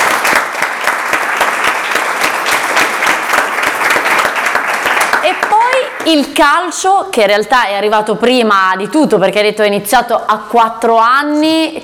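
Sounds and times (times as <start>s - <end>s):
audience applause: 0.0s - 6.1s
speech: 6.1s - 11.8s.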